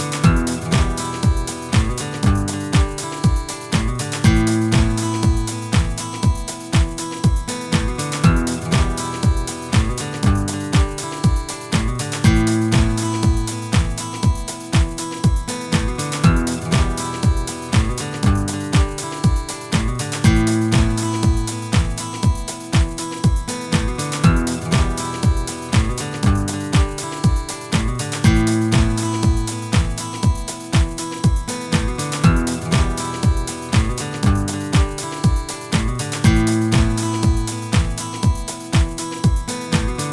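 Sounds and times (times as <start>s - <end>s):
techno guitar: 0.0s - 40.1s.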